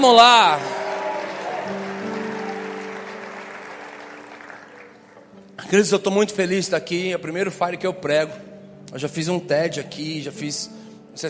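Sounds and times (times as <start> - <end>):
speech: 0.0 - 0.8, 5.6 - 11.2
crowd clapping: 0.0 - 5.4
sustained musical tones: 1.2 - 5.6.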